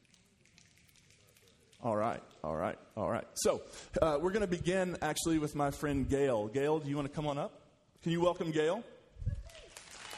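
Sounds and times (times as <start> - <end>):
audience snapping fingers: 0.0 - 2.6
speech: 1.8 - 9.0.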